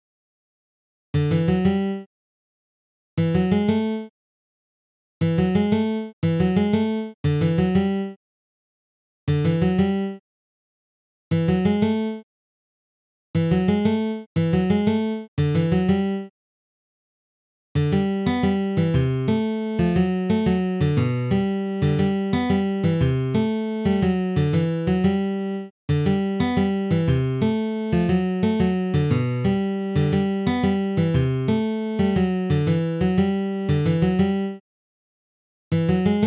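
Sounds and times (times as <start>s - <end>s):
guitar: 1.2s - 2.0s, 3.2s - 4.1s, 5.2s - 8.1s, 9.3s - 10.2s, 11.3s - 12.2s, 13.4s - 16.3s, 17.8s - 34.6s, 35.8s - 36.2s.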